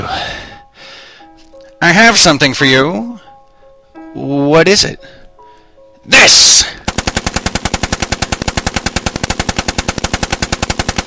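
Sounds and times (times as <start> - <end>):
speech: 1.9 - 3.2, 4.2 - 5.2, 6.1 - 6.8
Tommy gun burst of gunfire: 6.9 - 11.0.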